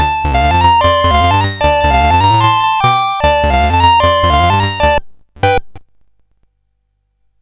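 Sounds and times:
SID CSG8580R5 chip game music: 0:00.0 - 0:05.7.

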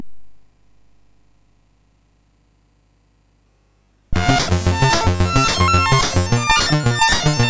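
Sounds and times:
level up chiptune jingle on MOS 6581 SID chip: 0:04.2 - 0:07.4.

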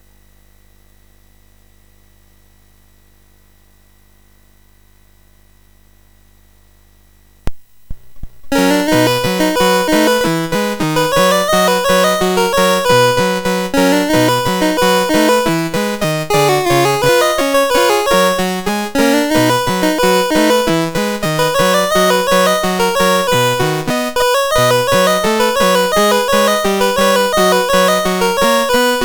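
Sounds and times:
MOS6581R4 SID chip game music: 0:08.3 - 0:29.0.

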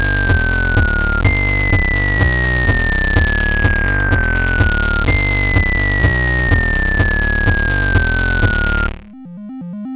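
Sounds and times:
techno music on SID 8580R5 chip: 0:00.0 - 0:09.3.

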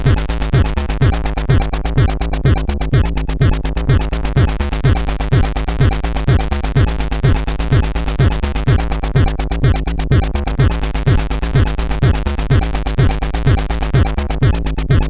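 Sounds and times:
acid synth sound from a MOS6581R2 chip: 0:00.0 - 0:15.0.

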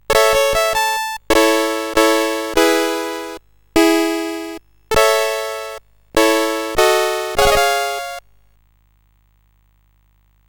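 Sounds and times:
SID CSG8580R5 chip music: 0:00.0 - 0:08.2.

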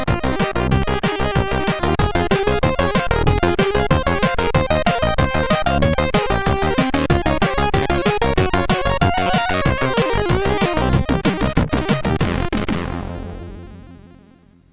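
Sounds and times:
groove played on a MOS6581R4 SID sound chip: 0:00.0 - 0:13.6.

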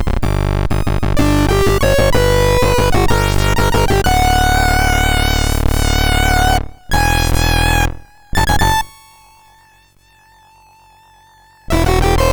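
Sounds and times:
MOS 6581R2 SID chip music: 0:00.0 - 0:08.0, 0:11.7 - 0:12.3.

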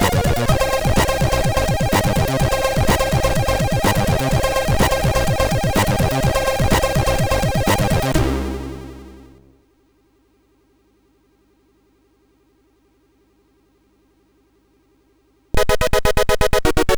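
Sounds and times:
SID MOS6581R3 chip sound: 0:00.0 - 0:09.4, 0:15.6 - 0:16.9.

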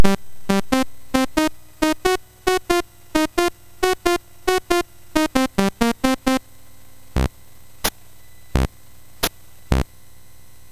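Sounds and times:
MOS6581R3 chip game music: 0:00.0 - 0:06.4.

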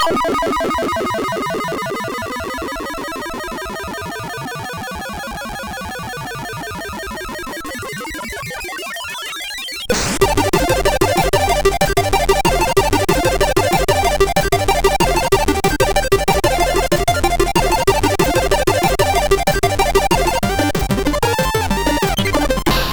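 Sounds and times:
chiptune waltz on MOS6581R3 sound chip: 0:00.0 - 0:04.4, 0:09.9 - 0:22.9.

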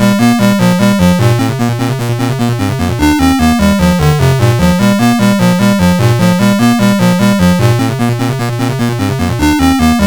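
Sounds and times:
MOS 8580 SID chip game music: 0:00.0 - 0:10.0.

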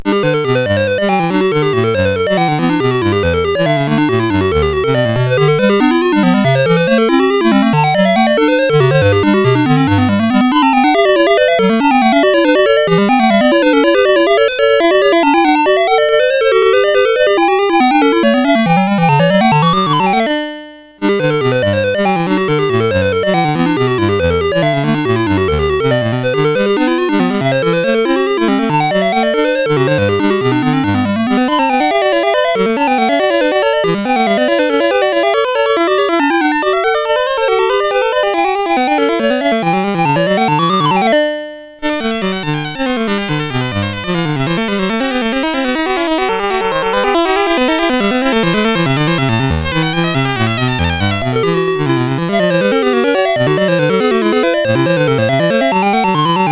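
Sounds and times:
baroque variations as SID chiptune music on CSG8580R5: 0:00.0 - 0:56.4.

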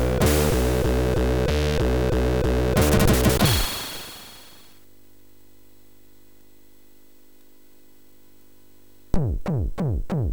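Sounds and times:
heavy music on a MOS6581R3 sound chip: 0:00.0 - 0:03.6, 0:09.2 - 0:10.3.

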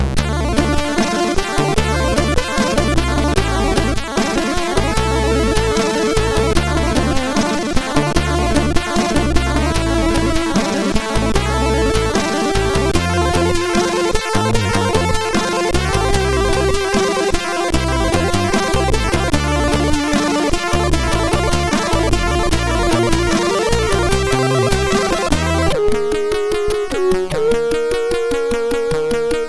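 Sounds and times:
chiptune military music on MOS6581R2 sound chip: 0:00.2 - 0:29.4.

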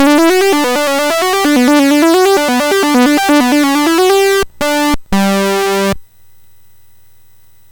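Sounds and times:
MOS6581R3 SID chip game music: 0:00.0 - 0:06.0.

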